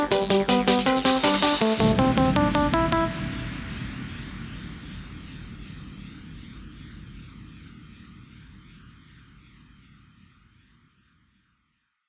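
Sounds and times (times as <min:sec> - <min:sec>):
1990s techno dance music: 0:00.0 - 0:03.8.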